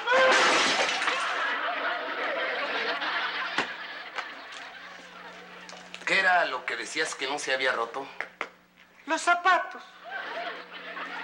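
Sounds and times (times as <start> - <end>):
Swiss flower vase falling and shattering: 0.1 - 1.4
laughter: 0.1 - 6.3, 9.8 - 11.2
speech: 6.3 - 8.3, 9.1 - 10.0.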